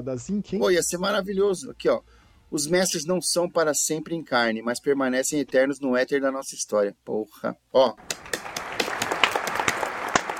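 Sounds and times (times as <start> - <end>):
speech: 0.0 - 8.4
small group clapping: 8.0 - 10.3.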